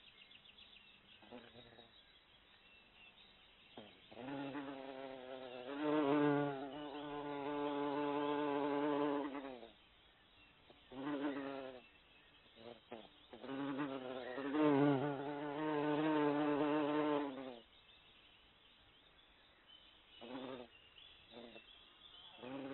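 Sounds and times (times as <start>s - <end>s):
bee buzzing: 4.1s - 9.7s, 11.0s - 11.8s, 12.6s - 17.6s, 22.4s - 22.7s.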